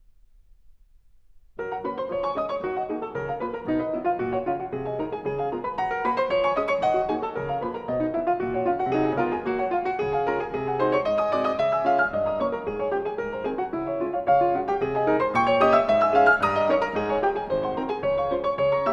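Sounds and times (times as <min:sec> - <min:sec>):
piano etude in G flat major: 0:00.0 - 0:18.9.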